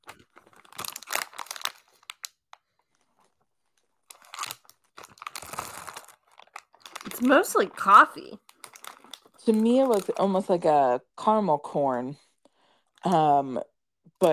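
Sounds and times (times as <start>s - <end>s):
bag crinkling while handled: 0.0s - 10.3s
speech: 7.2s - 8.4s, 9.5s - 12.2s, 13.0s - 14.3s.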